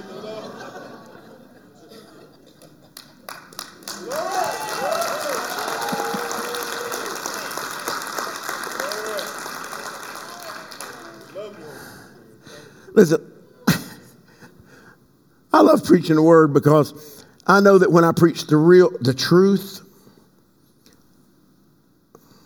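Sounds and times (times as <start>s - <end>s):
laughter: 0.0s - 3.3s, 5.2s - 9.2s
crowd applause: 2.5s - 12.2s
excited voices calling out and cheering: 3.8s - 11.8s
speech: 13.0s - 13.3s, 15.9s - 19.8s.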